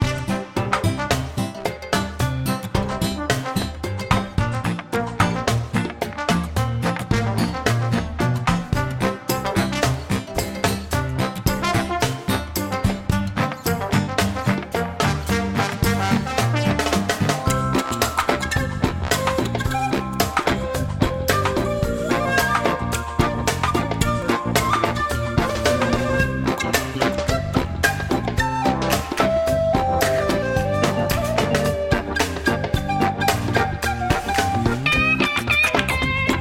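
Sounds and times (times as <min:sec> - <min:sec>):
game music: 0:00.1 - 0:36.3.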